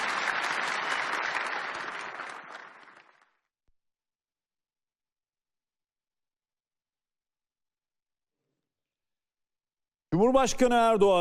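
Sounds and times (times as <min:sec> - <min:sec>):
strong audience applause: 0:00.0 - 0:03.5
speech: 0:10.2 - 0:11.2.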